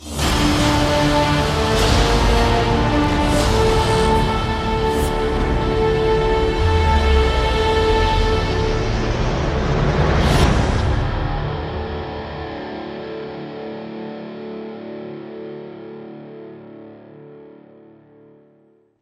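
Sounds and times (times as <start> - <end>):
dropship lift-off: 0.0 - 11.2.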